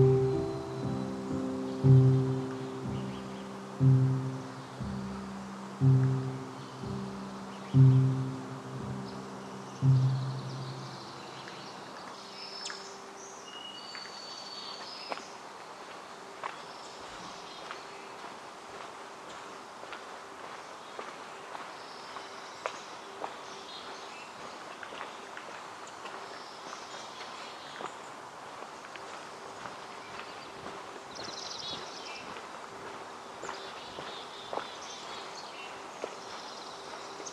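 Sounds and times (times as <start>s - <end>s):
footstep-like taps: 0.0s - 10.9s
low humming tone: 0.0s - 11.5s
high bird chirps in Forest Park in Portland, Oregon: 0.0s - 11.7s.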